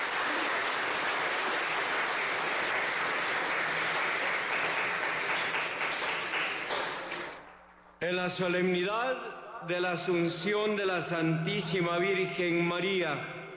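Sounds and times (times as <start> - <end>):
audience applauding: 0.0 - 7.5
speech: 8.0 - 13.4.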